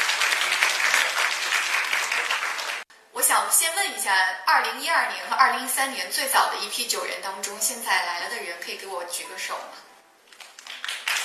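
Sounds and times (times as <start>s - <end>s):
audience applause: 0.0s - 2.9s, 10.4s - 11.2s
speech: 3.5s - 9.9s.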